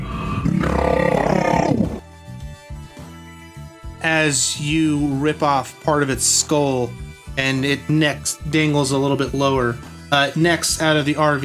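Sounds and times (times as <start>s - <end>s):
monster roaring in pain: 0.0s - 2.0s
speech: 4.2s - 11.4s.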